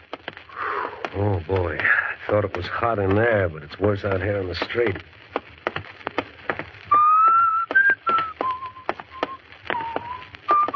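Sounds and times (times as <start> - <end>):
footsteps: 0.0 - 10.7
speech: 1.2 - 5.2
person whistling a tune: 6.9 - 10.7.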